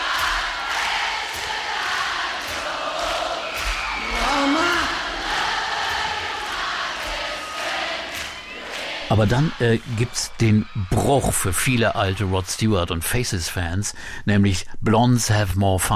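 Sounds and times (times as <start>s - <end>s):
live concert audience singing along: 0.0s - 10.1s
speech: 9.1s - 15.9s.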